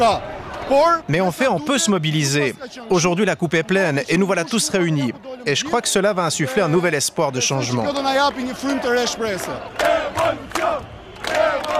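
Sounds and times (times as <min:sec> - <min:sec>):
speech: 0:00.0 - 0:10.9
protest crowd chanting on city boulevards: 0:07.6 - 0:11.7.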